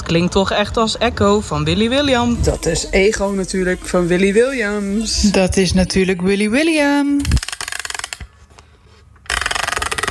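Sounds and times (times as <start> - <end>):
speech: 0.1 - 7.4
music box being wound up: 7.2 - 8.3, 9.2 - 10.0.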